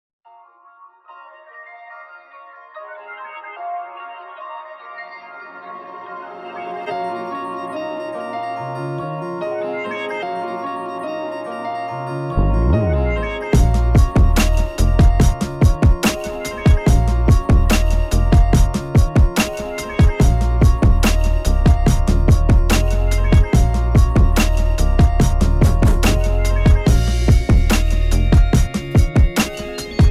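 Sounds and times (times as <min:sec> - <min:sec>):
instrumental music: 0:00.3 - 0:30.1.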